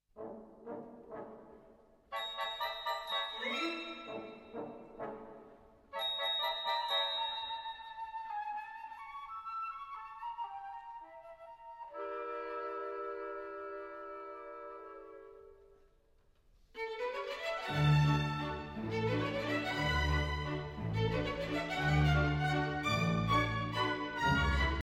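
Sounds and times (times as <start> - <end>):
ballet music for a male variation: 0.2 - 15.9, 16.8 - 24.8.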